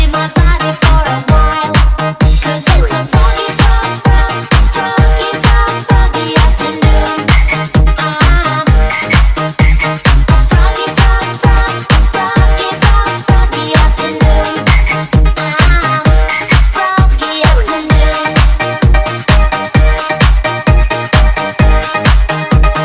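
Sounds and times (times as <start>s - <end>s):
drum beat at 130 BPM: 0.0s - 22.8s.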